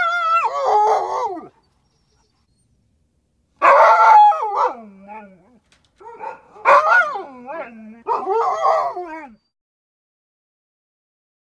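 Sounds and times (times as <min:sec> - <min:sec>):
dog yowling: 0:00.0 - 0:02.3, 0:03.6 - 0:09.4.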